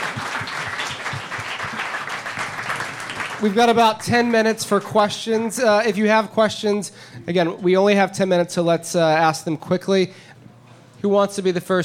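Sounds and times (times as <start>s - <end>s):
audience applause: 0.0s - 4.9s
speech: 3.4s - 10.3s, 11.0s - 11.8s.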